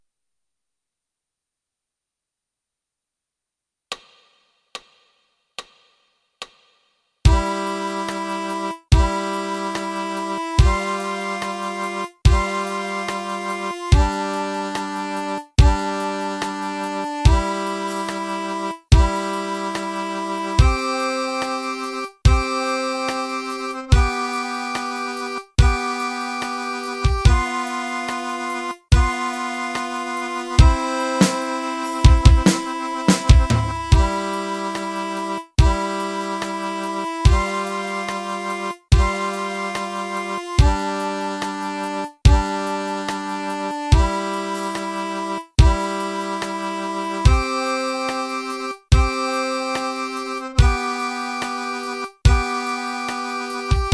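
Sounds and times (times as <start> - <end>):
accordion played with the right hand: 7.2 - 53.9.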